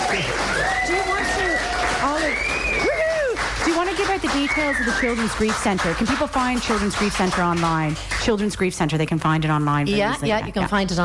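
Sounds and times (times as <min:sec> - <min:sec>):
audience applause: 0:00.0 - 0:08.5
speech: 0:04.2 - 0:11.0.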